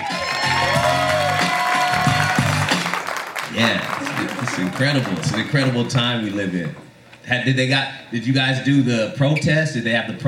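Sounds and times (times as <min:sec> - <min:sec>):
whoops and cheers: 0:00.0 - 0:02.8
crowd applause: 0:00.0 - 0:06.8
speech: 0:04.6 - 0:10.2.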